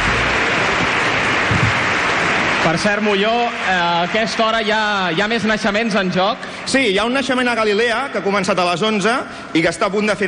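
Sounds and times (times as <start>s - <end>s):
applause for an accordion player: 0.0s - 6.8s
speech: 2.6s - 10.2s.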